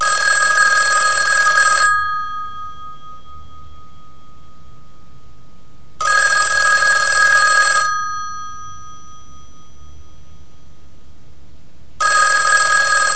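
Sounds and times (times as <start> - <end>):
telephone: 0.0 - 3.4, 6.0 - 9.3, 12.0 - 13.1.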